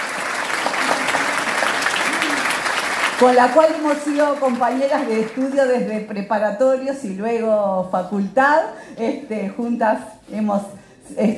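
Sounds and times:
applause for a newly appointed minister of Industry, Energy and Mining: 0.0 - 5.9
speech: 3.2 - 11.3.

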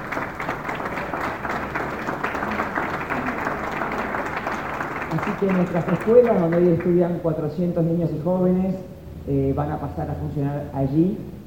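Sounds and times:
audience applause: 0.0 - 7.2
speech: 5.2 - 11.4.

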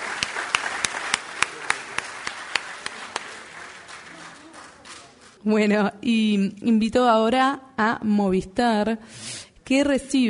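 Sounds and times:
crowd applauding: 0.0 - 5.4
sharp evenly spaced claps: 0.0 - 5.4
speech: 5.4 - 10.2.

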